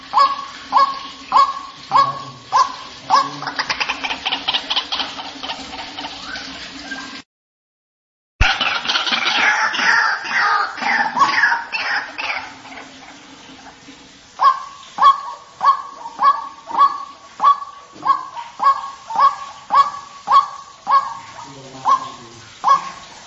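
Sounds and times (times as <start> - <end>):
white-breasted waterhen clipped rising notes and harsh croaking calls used as a lure: 0.0 - 7.2, 8.4 - 23.2.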